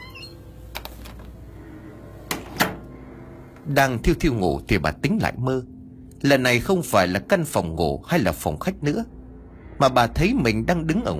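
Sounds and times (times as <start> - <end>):
door being closed: 0.0 - 1.5, 2.2 - 3.1
speech: 3.7 - 9.2, 9.8 - 11.1.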